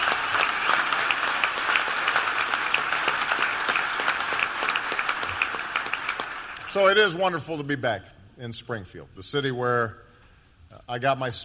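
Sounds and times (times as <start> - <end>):
audience applause: 0.0 - 6.8
speech: 6.8 - 10.0, 10.7 - 11.4.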